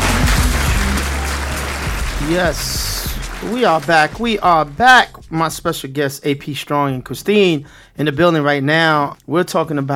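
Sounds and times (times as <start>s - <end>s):
applause: 0.0s - 5.1s
speech: 2.2s - 9.9s.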